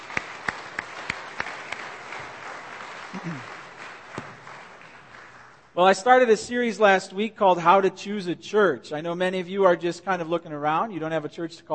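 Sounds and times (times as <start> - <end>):
audience applause: 0.0 - 5.7
speech: 3.2 - 3.6, 5.8 - 11.7.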